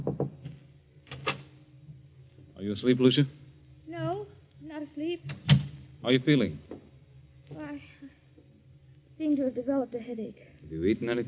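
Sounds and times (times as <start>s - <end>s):
knock at a door: 0.0s - 0.5s
speech: 2.6s - 3.4s, 5.0s - 6.7s, 9.4s - 11.2s.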